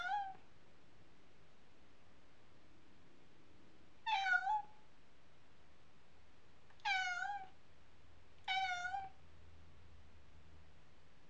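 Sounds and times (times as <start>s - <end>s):
cat meowing: 0.0s - 0.4s, 4.0s - 4.8s, 6.8s - 7.6s, 8.4s - 9.2s.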